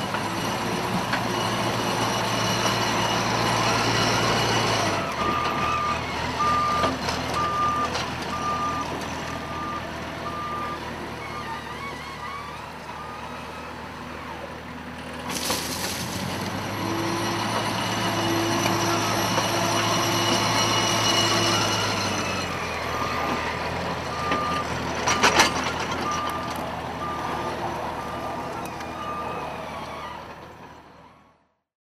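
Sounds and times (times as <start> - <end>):
JCB digger with pusher reversing: 0.0 - 31.4
JCB digger pushing sugar beet into a heap: 15.3 - 16.8.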